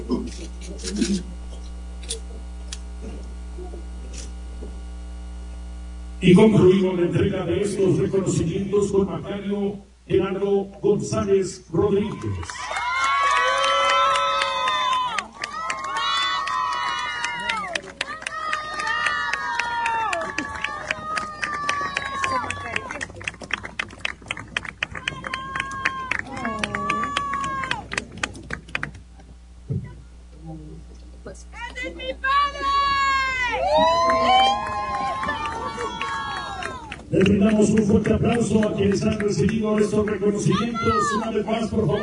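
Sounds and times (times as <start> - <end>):
speech: 0.8 - 1.4, 6.2 - 12.8, 38.4 - 42.0
audience cheering: 12.0 - 23.4, 24.8 - 28.1, 32.3 - 38.7
audience applause: 12.2 - 29.0, 33.6 - 40.9.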